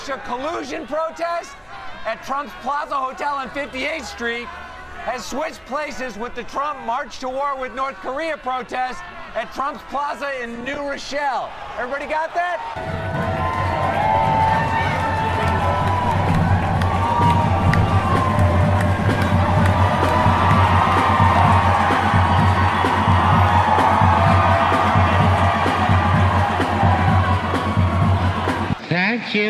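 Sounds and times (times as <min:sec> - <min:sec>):
speech: 0:00.0 - 0:13.2, 0:29.2 - 0:29.4
large crowd roaring and cheering: 0:00.0 - 0:29.4
whoops and shouts: 0:12.8 - 0:28.2.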